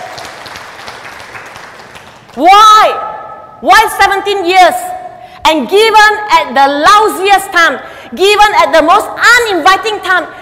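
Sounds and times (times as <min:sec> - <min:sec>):
church congregation clapping as a clap offering to the Lord: 0:00.0 - 0:02.4
speech: 0:02.4 - 0:04.8, 0:05.5 - 0:10.4.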